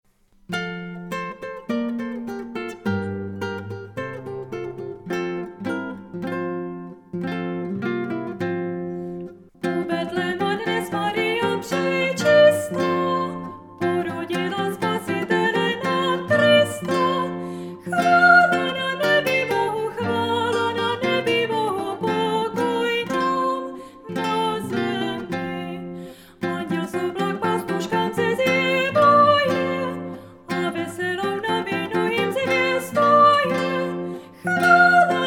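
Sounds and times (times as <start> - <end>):
guitar: 0.0 - 35.2
person singing a Czech carol: 9.6 - 35.2.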